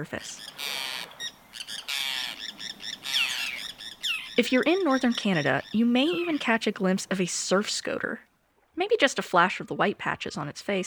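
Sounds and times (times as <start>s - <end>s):
speech: 0.0s - 0.8s, 4.4s - 10.8s
Forster's tern call: 0.0s - 7.7s.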